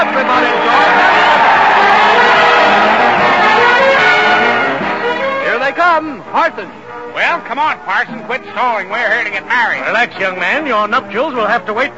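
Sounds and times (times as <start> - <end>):
crowd jumping and cheering: 0.0 - 6.0
speech: 6.0 - 11.9.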